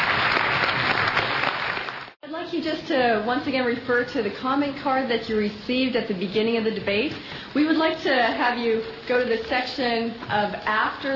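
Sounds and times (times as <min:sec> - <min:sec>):
audience clapping: 0:00.0 - 0:02.2
speech: 0:02.6 - 0:11.1.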